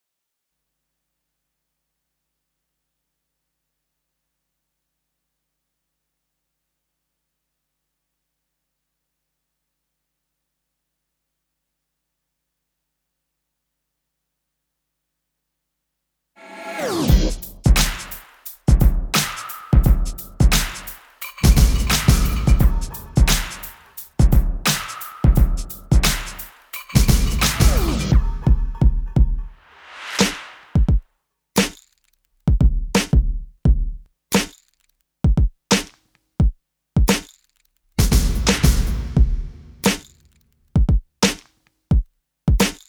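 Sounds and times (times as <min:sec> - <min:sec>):
percussion: 0:16.4 - 0:31.0, 0:31.6 - 0:42.8.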